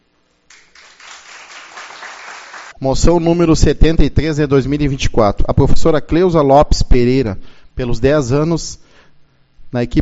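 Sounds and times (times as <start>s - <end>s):
audience applause: 0.5s - 2.8s
speech: 2.8s - 8.8s, 9.7s - 10.0s.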